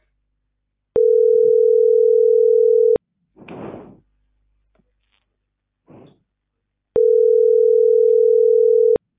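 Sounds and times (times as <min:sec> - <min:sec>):
unanswered telephone ringback tone: 0:01.0 - 0:03.0, 0:07.0 - 0:09.0.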